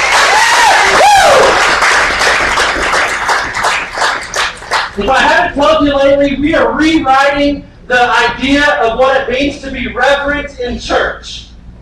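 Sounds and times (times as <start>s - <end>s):
whoops and cheers: 0.0s - 1.8s
audience applause: 0.0s - 5.0s
speech: 5.0s - 11.4s.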